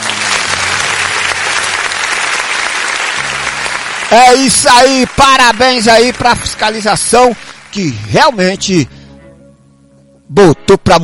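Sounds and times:
applause sound effect triggered by the production crew: 0.0s - 8.9s
speech: 4.1s - 9.0s, 10.3s - 11.0s.

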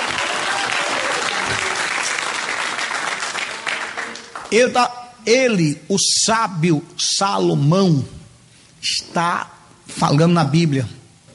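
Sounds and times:
audience applause: 0.0s - 4.6s
speech: 4.5s - 8.2s, 8.8s - 11.0s.

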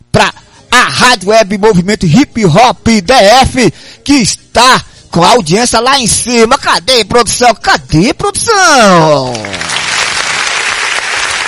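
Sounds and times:
speech: 1.0s - 9.7s
dense applause in a studio: 9.2s - 11.4s.

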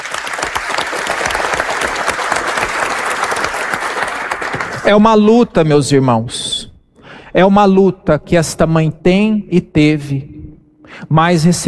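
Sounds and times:
audience applause: 0.0s - 4.9s
speech: 4.8s - 6.6s, 7.4s - 10.3s, 11.0s - 11.6s.

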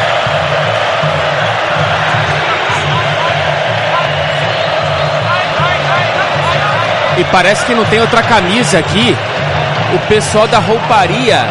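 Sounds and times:
Brazilian stadium football crowd getting louder: 0.0s - 11.5s
speech: 7.2s - 9.3s, 9.9s - 11.5s.

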